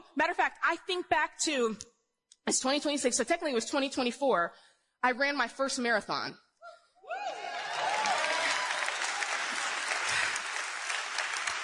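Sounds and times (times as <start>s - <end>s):
speech: 0.2s - 6.4s
audience applause: 7.3s - 11.6s.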